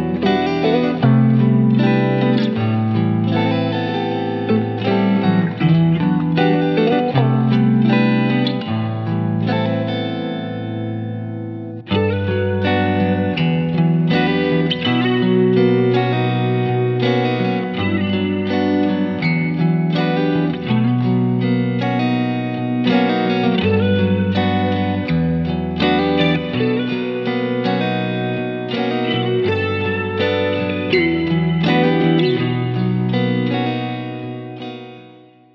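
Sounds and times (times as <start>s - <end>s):
R&B style guitars: 0.0s - 35.5s.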